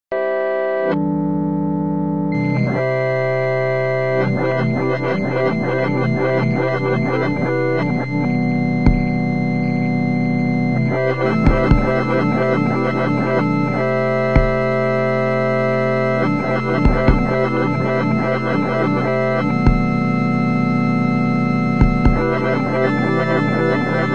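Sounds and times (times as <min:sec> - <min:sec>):
instrumental music: 0:00.1 - 0:24.1.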